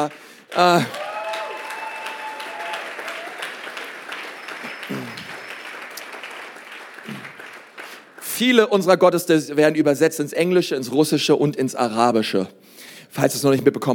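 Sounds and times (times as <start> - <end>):
speech: 0.0 - 1.0, 8.4 - 13.9
audience applause: 0.0 - 8.6.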